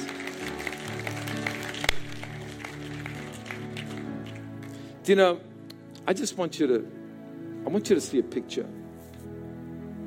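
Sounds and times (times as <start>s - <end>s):
audience clapping: 0.0s - 4.9s
speech: 5.0s - 5.5s, 6.1s - 7.0s, 7.7s - 8.8s.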